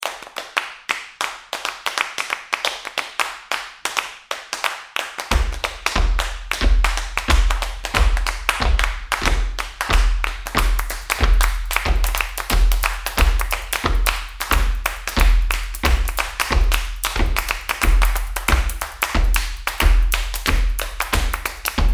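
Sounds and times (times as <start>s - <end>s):
hands clapping: 0.0s - 21.9s
feet stomping: 5.3s - 21.9s.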